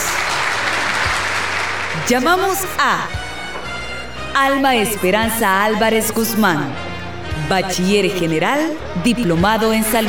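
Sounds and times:
audience applause for graduates: 0.0s - 2.1s
speech: 2.1s - 3.2s, 4.4s - 6.9s, 7.5s - 10.0s.

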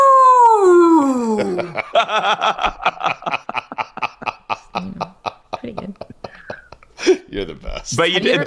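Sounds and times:
voice imitating a long drawn-out boo: 0.0s - 1.6s
rhythmic choppy laughter: 1.1s - 7.3s
speech: 2.0s - 2.7s, 7.8s - 8.4s.

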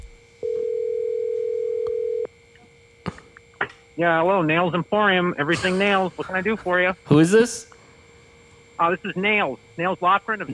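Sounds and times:
telephone dial tone: 0.4s - 2.3s
speech: 4.0s - 7.7s, 8.8s - 10.5s.

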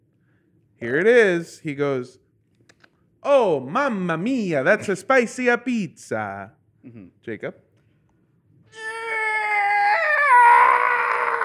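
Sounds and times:
speech: 0.8s - 2.2s, 3.2s - 7.6s
person's voice imitating a stock movie scream: 8.7s - 11.4s.

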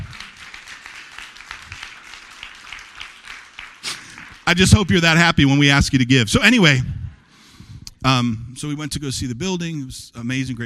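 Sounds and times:
crowd applause: 0.0s - 5.2s
speech: 4.5s - 7.0s, 8.0s - 10.6s.

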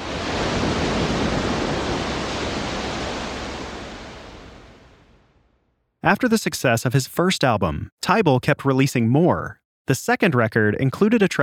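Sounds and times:
ocean surf rushing: 0.0s - 5.5s
speech: 6.0s - 11.4s.

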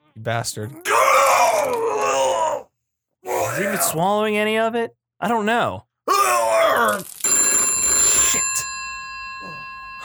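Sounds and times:
speech: 0.2s - 2.6s, 3.6s - 5.9s, 6.8s - 7.5s
telephone ringing: 7.2s - 10.0s.

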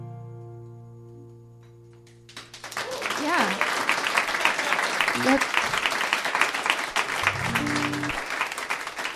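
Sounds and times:
crowd applauding: 2.0s - 9.1s.

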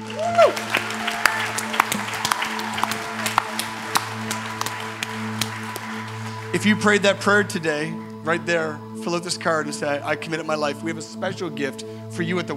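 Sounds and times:
audience applause: 0.0s - 7.5s
speech: 6.5s - 12.5s.

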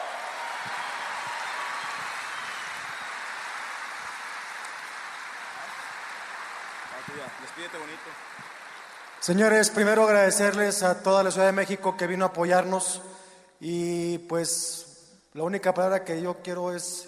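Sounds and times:
audience applause: 0.0s - 10.3s
speech: 7.0s - 8.6s, 9.2s - 17.0s.

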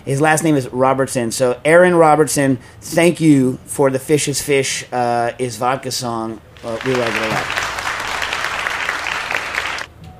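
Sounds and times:
speech: 0.0s - 7.6s
dense clapping at the end of a song: 6.6s - 9.9s.

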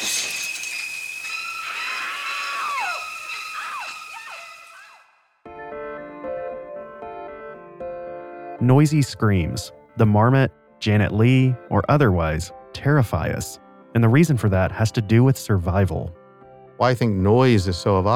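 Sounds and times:
screeching violin music from a film shower scene: 0.0s - 5.2s
speech: 8.6s - 16.2s, 16.8s - 18.1s.

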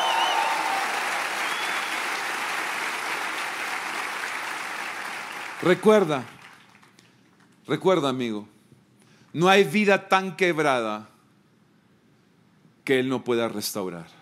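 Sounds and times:
audience applause: 0.0s - 7.2s
speech: 5.6s - 6.4s, 7.7s - 8.5s, 9.3s - 11.1s, 12.8s - 14.1s.

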